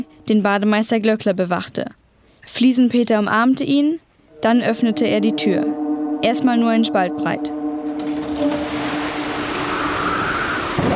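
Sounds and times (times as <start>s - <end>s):
speech: 0.0s - 7.6s
heavy storm rain pouring: 8.0s - 10.9s.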